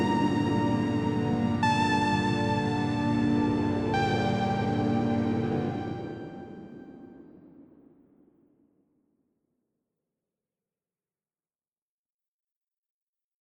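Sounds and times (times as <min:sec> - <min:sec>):
ambient music: 0:00.0 - 0:07.8.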